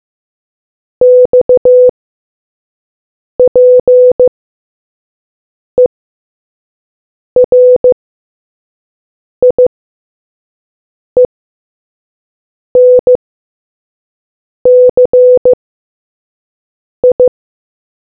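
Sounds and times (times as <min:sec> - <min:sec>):
morse code beeps: 0:01.0 - 0:01.9, 0:03.4 - 0:04.3, 0:07.4 - 0:08.0, 0:09.4 - 0:09.6, 0:12.8 - 0:13.2, 0:14.7 - 0:15.6, 0:17.0 - 0:17.3.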